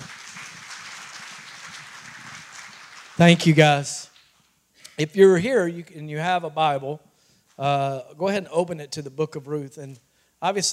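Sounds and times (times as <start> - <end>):
audience hand clapping: 0.0 - 4.4
speech: 3.2 - 4.1, 5.0 - 7.0, 7.6 - 10.7.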